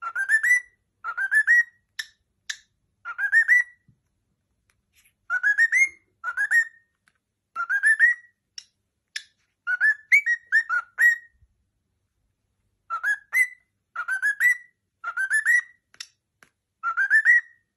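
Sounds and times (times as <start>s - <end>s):
cockatiel whistling: 0.0s - 3.9s, 5.3s - 6.9s, 7.5s - 11.4s, 12.9s - 16.1s, 16.8s - 17.7s.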